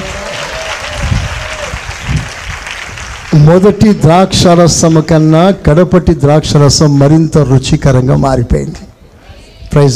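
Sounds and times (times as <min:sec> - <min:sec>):
church congregation clapping to praise the Lord during a Telugu sermon: 0:00.0 - 0:04.0
speech: 0:03.3 - 0:08.9, 0:09.7 - 0:09.9.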